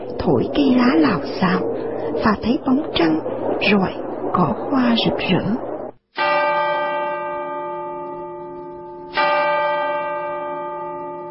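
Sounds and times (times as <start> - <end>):
speech: 0.2 - 6.3
clock striking ten o'clock: 6.2 - 11.3.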